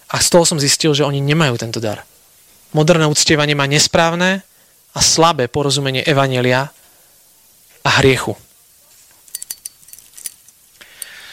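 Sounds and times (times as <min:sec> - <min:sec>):
speech: 0:00.1 - 0:06.8, 0:07.8 - 0:08.5
keys jangling: 0:09.2 - 0:11.2.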